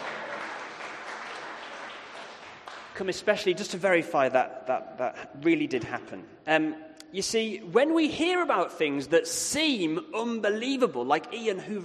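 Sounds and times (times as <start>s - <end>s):
crowd applauding: 0.0s - 3.1s
speech: 3.0s - 11.8s.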